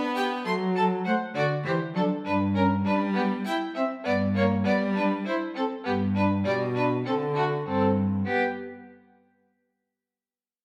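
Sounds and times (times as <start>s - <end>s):
minuet for two violins and bass: 0.0s - 9.0s.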